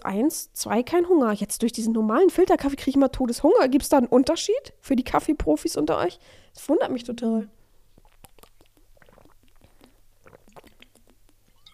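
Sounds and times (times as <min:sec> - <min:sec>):
speech: 0:00.0 - 0:07.6
stomach growling: 0:08.0 - 0:11.7.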